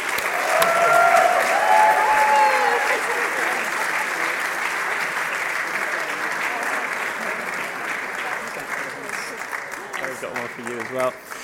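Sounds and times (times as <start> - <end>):
crowd clapping: 0.0 - 11.4
faint whistles and cheers: 0.2 - 3.0
speech: 10.9 - 11.3.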